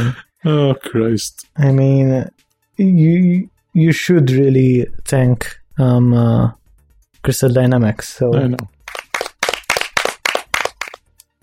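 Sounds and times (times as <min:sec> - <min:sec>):
speech: 0:00.0 - 0:06.6, 0:07.2 - 0:08.8
slow clap: 0:08.6 - 0:11.4.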